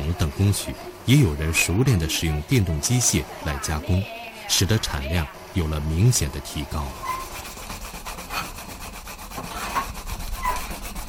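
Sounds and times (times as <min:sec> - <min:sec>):
speech: 0:00.4 - 0:07.2
hand sanding a bamboo fan: 0:06.4 - 0:11.0.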